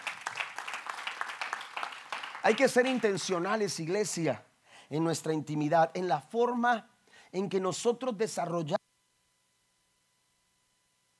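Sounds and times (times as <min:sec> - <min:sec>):
audience applause: 0:00.0 - 0:04.2
speech: 0:02.4 - 0:08.8.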